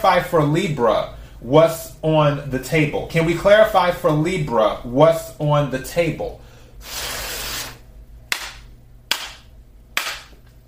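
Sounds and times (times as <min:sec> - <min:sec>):
speech: 0:00.0 - 0:07.1
cards squared up with crisp slaps: 0:08.3 - 0:10.4.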